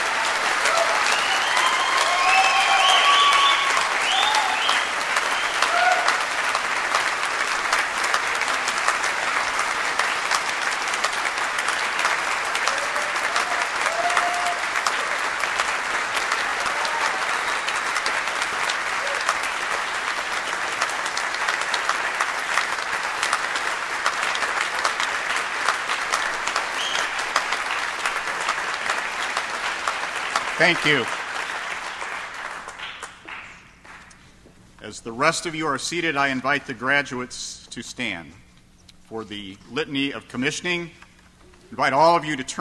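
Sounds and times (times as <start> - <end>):
brief cheers and whoops: 0.0 - 4.9, 5.5 - 6.2, 12.6 - 15.2, 16.5 - 17.5, 19.0 - 19.4
large crowd applauding graduates: 0.0 - 34.2
speech: 30.6 - 31.2, 35.0 - 38.4, 39.1 - 41.0, 41.7 - 42.5.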